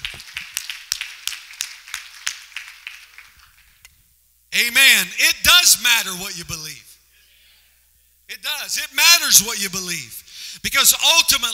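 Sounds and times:
audience clapping rhythmically: 0.0 - 3.9
speech: 4.6 - 6.9, 8.3 - 11.5.

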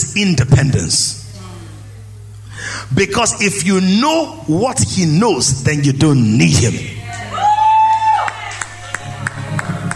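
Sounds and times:
speech: 0.2 - 1.2, 2.6 - 7.0
audience whooping: 7.1 - 9.9
scattered audience claps: 8.5 - 9.9.

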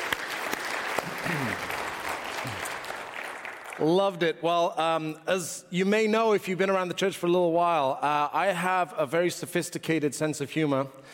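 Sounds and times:
audience applause after a Christmas Eve kids performance: 0.0 - 3.9
speech: 1.3 - 1.7, 3.8 - 11.1.

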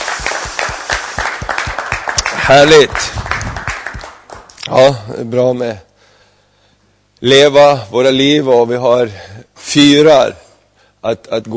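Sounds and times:
audience applause: 0.0 - 4.6
speech: 2.5 - 3.2, 4.7 - 5.9, 7.2 - 10.4, 11.0 - 11.5.

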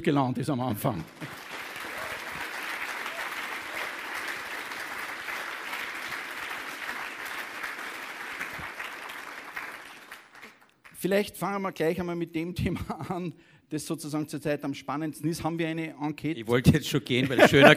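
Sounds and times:
speech: 0.0 - 1.4, 11.0 - 17.7
audience applause: 0.9 - 10.9
laughter: 17.2 - 17.7.

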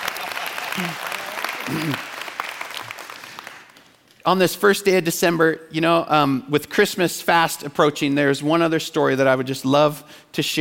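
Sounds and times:
audience applause: 0.0 - 3.8
speech: 0.8 - 1.1, 1.7 - 2.1, 4.2 - 10.6.

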